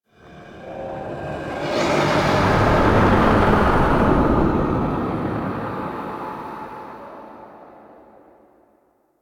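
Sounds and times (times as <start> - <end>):
spectral whoosh: 0.6 - 7.5.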